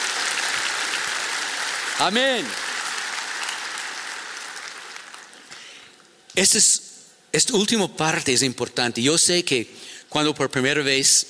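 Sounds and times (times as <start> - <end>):
audience applause: 0.0 - 5.5
speech: 2.0 - 2.6, 6.4 - 11.2.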